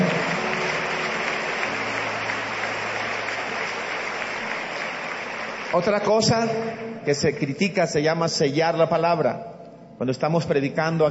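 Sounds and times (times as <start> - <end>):
audience applause: 0.0 - 6.8
speech: 5.7 - 11.0.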